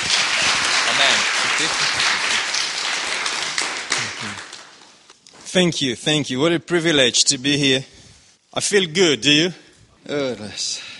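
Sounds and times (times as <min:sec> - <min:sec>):
congregation at a religious gathering clapping to welcome a guest speaker: 0:00.0 - 0:05.1
speech: 0:05.5 - 0:10.9.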